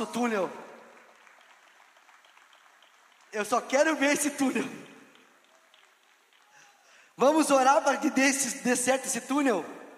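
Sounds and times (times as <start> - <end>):
speech: 0.0 - 0.6, 3.3 - 4.9, 7.2 - 9.8
crowd clapping: 0.0 - 7.2.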